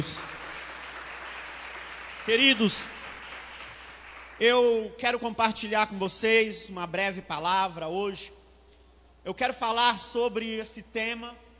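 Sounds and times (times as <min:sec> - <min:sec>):
audience applauding: 0:00.0 - 0:04.4
speech: 0:02.3 - 0:03.0, 0:04.4 - 0:08.4, 0:09.2 - 0:11.4.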